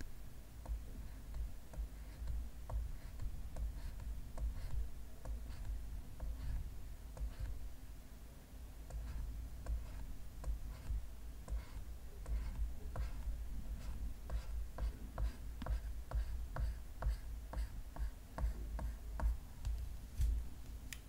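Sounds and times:
soft brushing of makeup on a tablet: 0:00.6 - 0:07.8, 0:08.9 - 0:20.9.

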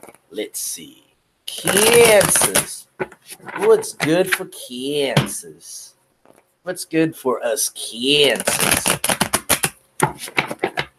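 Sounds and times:
speech: 0:00.3 - 0:06.0, 0:06.6 - 0:09.2, 0:10.2 - 0:10.6
tarot cards being shuffled: 0:01.5 - 0:04.4, 0:08.1 - 0:10.9.

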